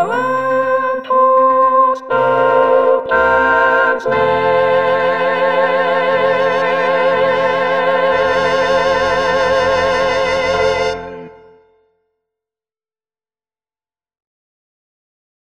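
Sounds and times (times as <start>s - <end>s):
alto playing a Christmas carol: 0.0s - 11.8s.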